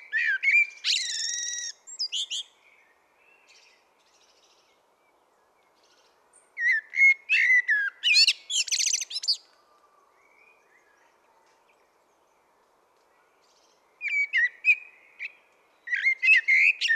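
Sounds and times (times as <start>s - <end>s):
common blackbird singing: 0.0s - 4.8s, 5.4s - 9.5s, 13.4s - 16.9s.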